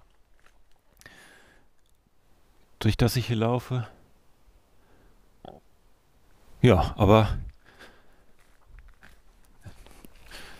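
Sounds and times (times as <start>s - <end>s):
footsteps on a wide gravel forest path in the Black Mountains: 0.0s - 1.1s, 8.3s - 10.5s
quiet rustling forest background: 0.0s - 5.1s, 5.8s - 10.5s
speech: 2.8s - 4.0s, 6.6s - 7.5s.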